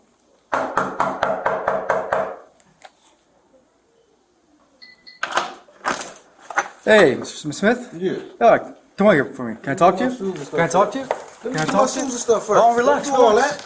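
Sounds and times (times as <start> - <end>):
police knocking on a front door: 0.5 - 2.4
speech: 6.9 - 13.6.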